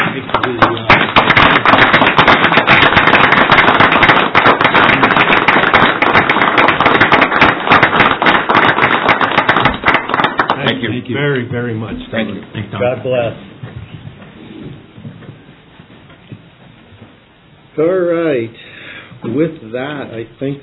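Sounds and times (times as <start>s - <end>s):
audience applause: 0.0s - 11.0s
speech: 11.1s - 13.5s, 17.8s - 18.6s, 19.2s - 20.6s.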